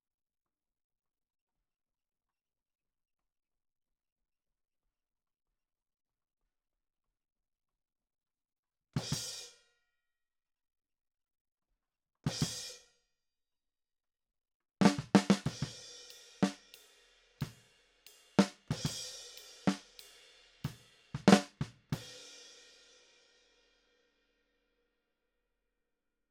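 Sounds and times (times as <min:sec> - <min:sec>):
snare drum: 0:14.8 - 0:15.8, 0:16.4 - 0:16.7, 0:18.3 - 0:22.1.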